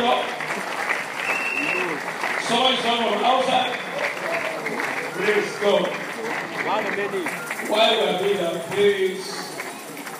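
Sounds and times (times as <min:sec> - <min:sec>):
audience clapping: 0:00.0 - 0:10.1
speech: 0:02.5 - 0:03.8, 0:05.2 - 0:06.0, 0:06.6 - 0:09.4.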